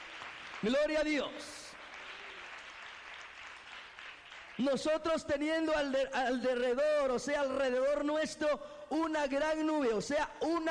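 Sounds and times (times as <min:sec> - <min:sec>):
church congregation applauding honouring the Lord: 0:00.0 - 0:05.3
speech: 0:00.6 - 0:01.6, 0:04.6 - 0:10.6.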